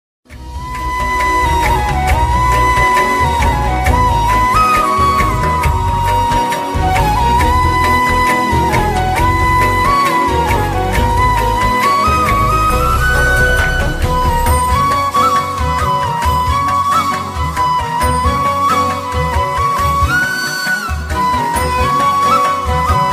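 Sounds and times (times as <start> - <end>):
flute background music ringtone: 0.4 - 23.1.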